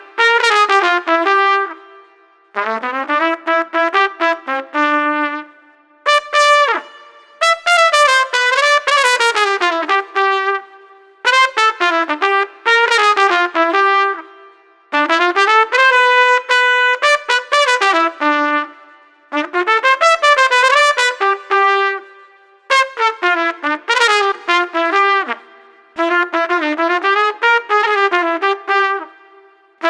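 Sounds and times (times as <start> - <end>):
trumpet solo: 0.0 - 29.8.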